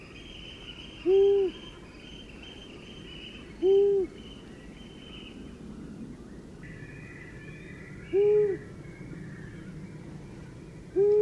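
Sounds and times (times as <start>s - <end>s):
long-eared owl hooting: 1.0s - 1.8s, 3.6s - 4.2s, 8.0s - 8.7s, 11.0s - 11.1s.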